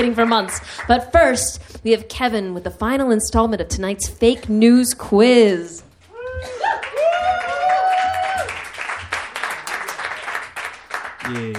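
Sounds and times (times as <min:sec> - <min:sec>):
applause: 0:00.0 - 0:00.9, 0:06.5 - 0:11.5
speech: 0:00.0 - 0:06.9, 0:11.3 - 0:11.5.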